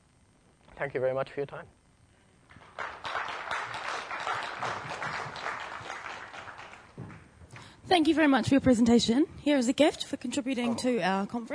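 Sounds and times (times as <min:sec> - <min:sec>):
speech: 0:00.8 - 0:01.8, 0:07.9 - 0:11.5
audience applause: 0:02.5 - 0:07.3.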